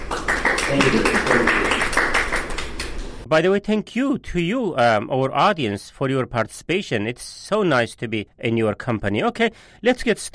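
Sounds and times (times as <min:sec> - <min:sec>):
audience applause: 0:00.0 - 0:03.0
speech: 0:03.3 - 0:10.3.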